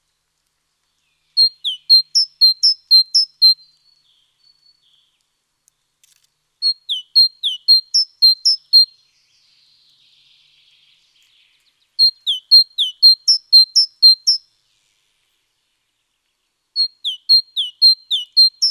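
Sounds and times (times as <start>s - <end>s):
Great tit song, Parus major: 1.4s - 5.1s, 6.6s - 9.0s, 12.0s - 14.5s, 16.8s - 18.6s.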